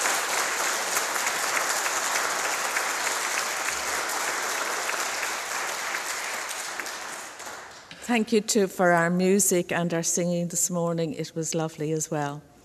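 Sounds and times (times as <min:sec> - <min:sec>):
audience applause: 0:00.0 - 0:08.1
speech: 0:08.1 - 0:12.5.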